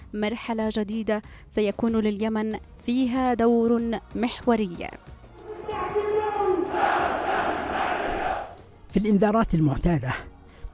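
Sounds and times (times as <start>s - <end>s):
speech: 0.1s - 5.1s, 8.9s - 10.7s
huge crowd chanting slogans in unison: 5.4s - 8.6s.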